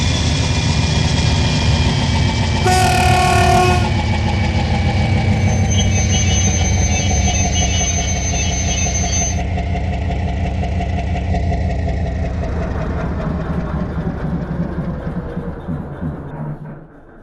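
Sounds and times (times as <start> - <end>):
Diesel 2TE10: 0.0 - 17.2.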